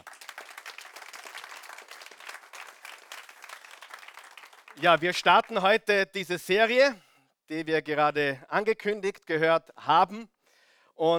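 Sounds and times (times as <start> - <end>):
audience applause: 0.0 - 5.0
speech: 4.8 - 10.3, 11.0 - 11.1.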